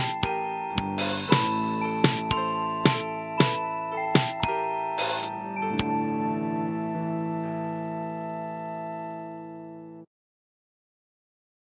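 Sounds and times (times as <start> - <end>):
drum: 0.0 - 3.6, 4.2 - 5.3
music with drum and crystal: 0.0 - 10.1.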